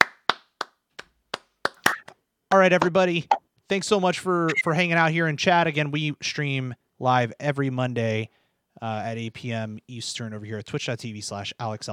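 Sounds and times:
clapping: 0.0 - 2.0
speech: 2.5 - 11.9.

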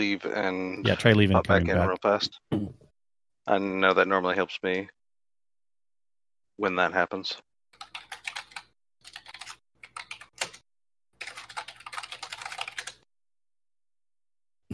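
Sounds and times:
speech: 0.0 - 2.8, 3.5 - 5.0, 6.6 - 7.5
computer keyboard typing: 7.7 - 13.1.

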